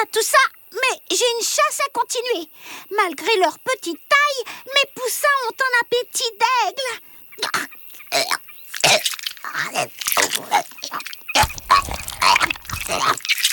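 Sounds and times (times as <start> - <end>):
speech: 0.1 - 11.9
barn owl regurgitating food: 10.3 - 13.2.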